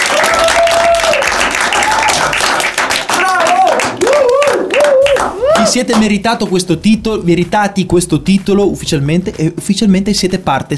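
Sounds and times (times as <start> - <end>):
group applause: 0.0 - 6.1
speech: 5.7 - 10.7.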